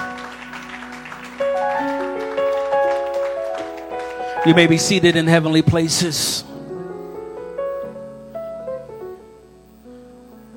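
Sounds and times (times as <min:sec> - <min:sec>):
audience clapping hands: 0:00.0 - 0:05.9
speech: 0:04.4 - 0:06.5.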